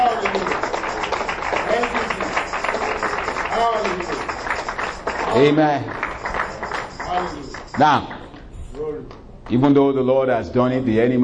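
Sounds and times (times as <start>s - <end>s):
audience hand clapping: 0.0s - 8.4s
speech: 5.4s - 6.0s, 7.8s - 8.1s, 9.5s - 11.2s.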